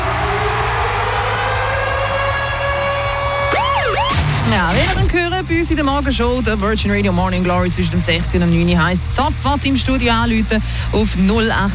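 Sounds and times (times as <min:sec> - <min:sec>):
rising and falling siren sweep: 0:00.0 - 0:05.0
radio ticket alarm siren jingle: 0:00.8 - 0:06.0
speech: 0:04.5 - 0:11.7.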